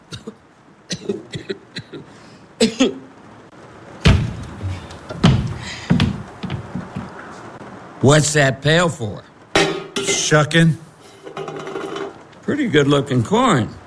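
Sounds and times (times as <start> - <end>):
wooden milking stool carried in and set down: 4.1 - 7.2
speech: 8.0 - 9.3, 10.3 - 10.8, 12.5 - 13.8.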